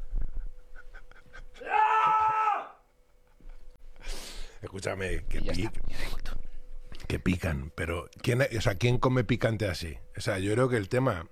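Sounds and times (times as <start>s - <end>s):
person screaming in frustration: 1.6s - 2.8s
speech: 4.7s - 6.4s, 7.1s - 11.3s.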